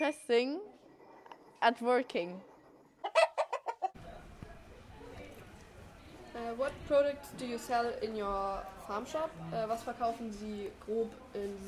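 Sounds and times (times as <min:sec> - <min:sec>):
speech: 0:00.0 - 0:00.7, 0:01.6 - 0:02.5, 0:06.4 - 0:11.6
chickens clucking on a farm: 0:02.8 - 0:04.0.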